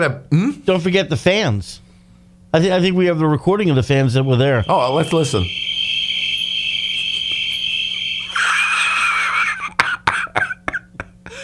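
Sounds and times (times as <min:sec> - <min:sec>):
speech: 0:00.0 - 0:01.8, 0:02.5 - 0:05.7
crickets chirping: 0:03.6 - 0:10.0
laughter: 0:08.2 - 0:11.3.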